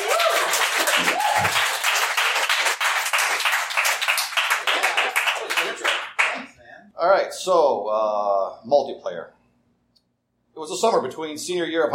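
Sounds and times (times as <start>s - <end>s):
audience applause welcoming a storyteller: 0.0s - 6.5s
speech: 7.3s - 9.4s, 10.6s - 11.9s.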